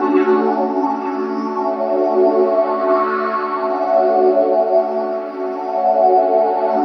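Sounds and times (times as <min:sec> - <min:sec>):
synth pad: 0:00.0 - 0:06.8.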